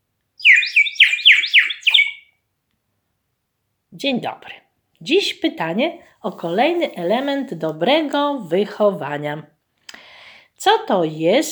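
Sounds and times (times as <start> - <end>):
clay rooster whistle: 0.4 - 2.3
speech: 3.9 - 9.6, 10.6 - 11.5.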